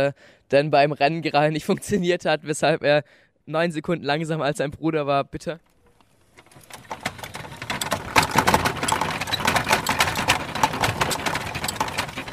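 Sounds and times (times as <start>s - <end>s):
speech: 0.0s - 5.7s
wheels rattling over cobblestone pavement: 5.6s - 12.3s.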